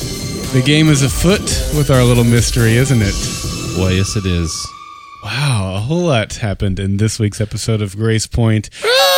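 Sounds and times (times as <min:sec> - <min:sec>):
music resembling screeching seagulls: 0:00.1 - 0:05.8
speech: 0:00.5 - 0:09.0.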